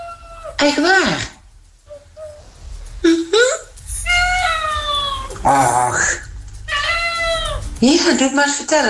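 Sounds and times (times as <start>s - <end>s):
hungry cats meowing: 0.0s - 0.8s, 3.6s - 7.8s
speech: 0.6s - 1.3s, 7.8s - 8.8s.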